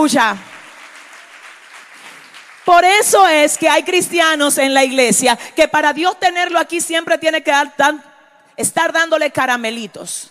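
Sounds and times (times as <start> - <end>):
speech: 0.0 - 0.5, 2.7 - 10.2
applause: 0.0 - 4.6.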